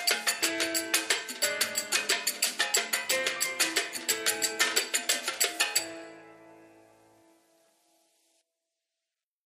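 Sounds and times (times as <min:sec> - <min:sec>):
Arabic lounge ringtone on LG VX5600 Accolade phone: 0:00.0 - 0:06.1.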